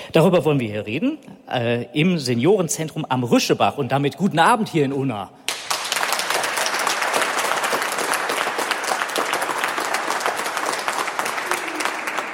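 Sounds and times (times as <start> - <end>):
speech: 0.1 - 5.4
audience applause: 5.5 - 12.3.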